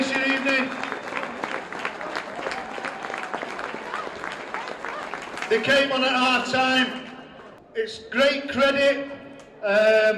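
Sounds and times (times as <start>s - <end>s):
round of applause: 0.0s - 6.3s
speech: 5.5s - 7.0s, 7.8s - 10.1s.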